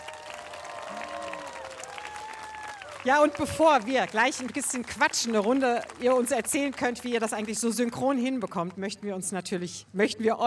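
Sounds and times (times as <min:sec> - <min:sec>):
audience applause for two dancers: 0:00.0 - 0:08.2
speech: 0:03.0 - 0:10.4.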